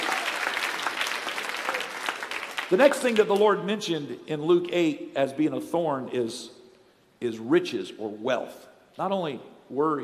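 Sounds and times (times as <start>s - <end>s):
audience clapping hands: 0.0s - 3.6s
speech: 2.7s - 6.6s, 7.2s - 10.0s.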